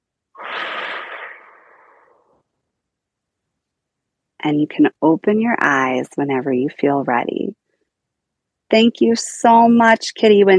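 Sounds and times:
slow breathing in and out during guided meditation: 0.4s - 2.5s
speech: 4.4s - 7.6s, 8.7s - 10.5s.

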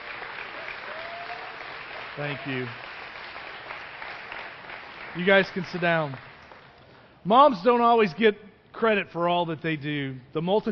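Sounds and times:
round of applause for mothers: 0.0s - 7.2s
speech: 2.2s - 3.0s, 5.2s - 6.3s, 7.2s - 10.6s.

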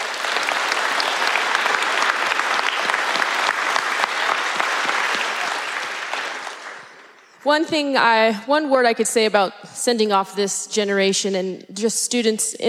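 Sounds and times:
crowd clapping: 0.0s - 7.5s
speech: 7.4s - 12.6s.

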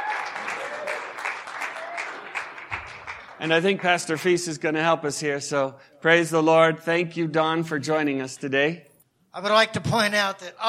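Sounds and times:
cheers and whoops: 0.0s - 2.5s
audience applause: 0.0s - 4.4s
speech: 3.4s - 10.6s.

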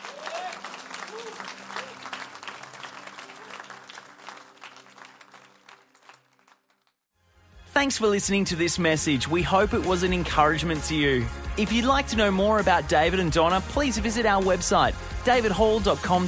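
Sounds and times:
audience applause: 0.0s - 7.0s
speech: 7.8s - 16.2s.

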